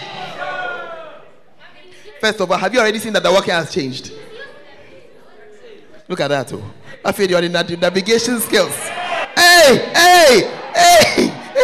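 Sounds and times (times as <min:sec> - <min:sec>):
group of people shouting: 0:00.0 - 0:01.4, 0:08.8 - 0:11.6
speech: 0:02.2 - 0:04.3, 0:06.1 - 0:09.0, 0:09.6 - 0:11.2.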